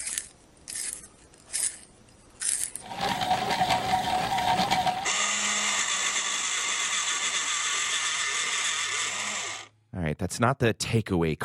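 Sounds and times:
pencil sharpeners: 2.4 - 9.7
speech: 10.4 - 11.4.

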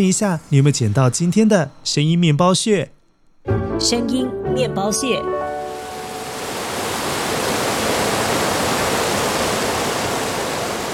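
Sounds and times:
speech: 0.0 - 5.5
river flowing: 5.5 - 10.9.

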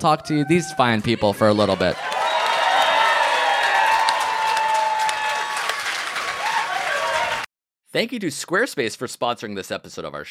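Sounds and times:
speech: 0.0 - 2.2, 7.9 - 10.2
faint whoops and cheers: 1.7 - 7.5
audience applause: 1.9 - 7.5.

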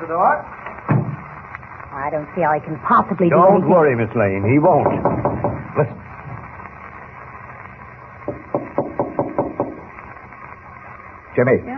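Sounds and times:
speech: 0.0 - 0.6, 2.1 - 6.0, 11.4 - 11.7
faint hiss: 0.0 - 11.7
knocking on a wooden door: 4.8 - 5.6, 8.3 - 9.8.

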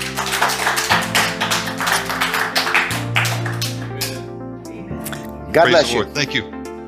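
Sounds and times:
hand clapping: 0.0 - 4.3
speech: 5.5 - 6.6.

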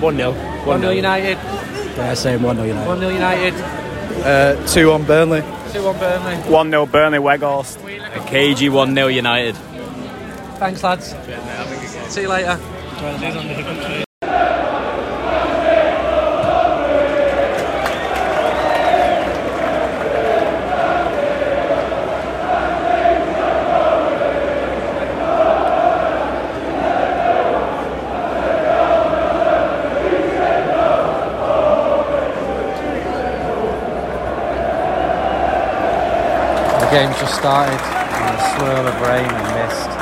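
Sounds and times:
speech: 0.0 - 9.7, 10.6 - 14.0, 37.0 - 39.9
football crowd of away supporters roaring and chanting in a stadium: 14.0 - 40.0.

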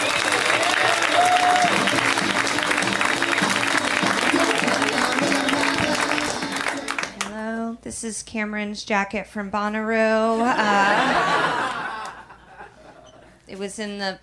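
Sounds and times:
audience applause for comedian: 0.0 - 7.3
laughter: 0.6 - 7.1, 10.3 - 13.3
speech: 8.0 - 11.6, 13.6 - 14.2.

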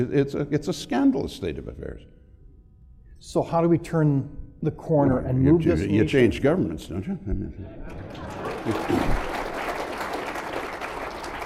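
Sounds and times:
speech: 0.0 - 2.2, 3.2 - 9.4
laughter: 7.1 - 9.6
crowd applauding: 7.9 - 11.4.

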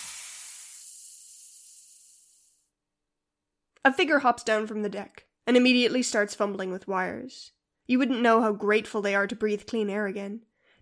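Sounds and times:
gentle hiss of something being released: 0.0 - 2.6
speech: 3.8 - 10.8.

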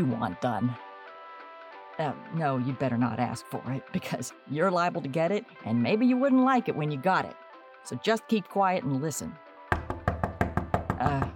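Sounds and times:
speech: 0.0 - 0.8, 2.0 - 9.4, 11.0 - 11.3
knock: 9.7 - 11.3.

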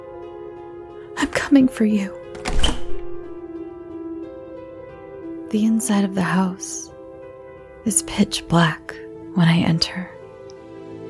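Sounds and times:
speech: 1.2 - 2.2, 5.5 - 6.9, 7.8 - 10.2
door being unlocked: 2.3 - 3.4.

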